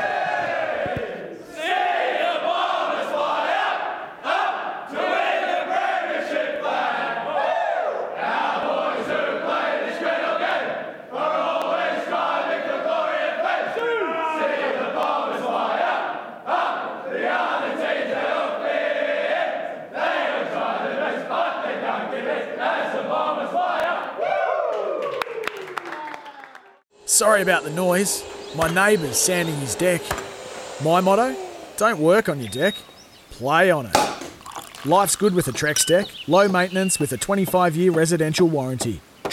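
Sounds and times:
team singing victory song in change rooms: 0.0s - 24.4s, 27.1s - 33.2s
speech: 27.4s - 30.2s, 30.8s - 34.0s, 34.8s - 39.1s.

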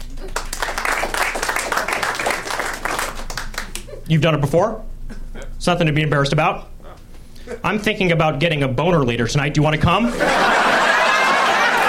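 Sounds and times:
audience applause: 0.0s - 3.9s, 10.5s - 11.8s
speech: 4.1s - 6.7s, 7.6s - 10.7s
laughter: 10.0s - 11.8s.

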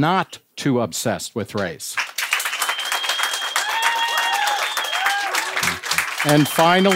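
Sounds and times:
speech: 0.0s - 2.1s, 6.2s - 6.9s
audience clapping to vote: 2.0s - 6.9s.

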